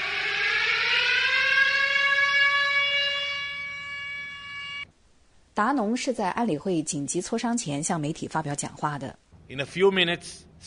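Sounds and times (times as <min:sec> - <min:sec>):
Israeli rocket warning siren during Hamas rocket fire: 0:00.0 - 0:04.9
speech: 0:05.6 - 0:10.6.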